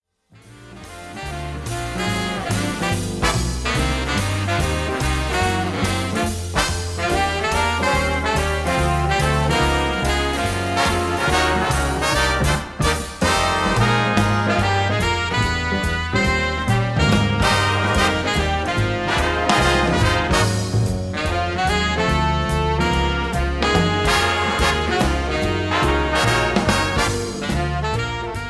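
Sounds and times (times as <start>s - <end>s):
saxophone: 0.4s - 28.4s.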